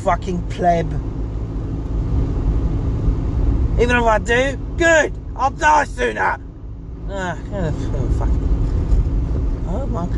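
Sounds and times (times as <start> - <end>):
speech: 0.0 - 1.2, 3.8 - 6.5, 7.1 - 8.6, 9.7 - 10.1
car engine rumble while being driven: 0.0 - 10.1.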